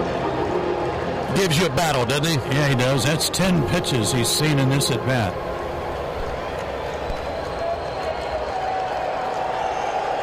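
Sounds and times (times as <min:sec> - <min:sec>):
stadium crowd of baseball fans cheering and applauding: 0:00.0 - 0:10.2
speech: 0:01.3 - 0:05.6.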